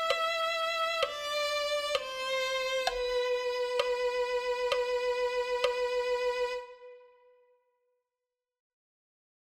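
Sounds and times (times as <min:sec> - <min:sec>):
violin: 0:00.0 - 0:07.5.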